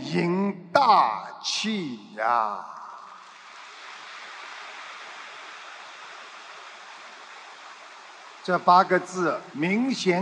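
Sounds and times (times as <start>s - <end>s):
speech: 0.1s - 2.8s, 8.5s - 10.1s
faint audience applause: 2.2s - 10.1s.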